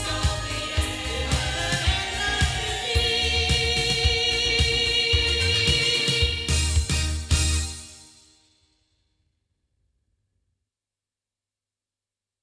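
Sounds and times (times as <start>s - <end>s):
ND6000 loudspeakers playing: 0.0s - 7.7s.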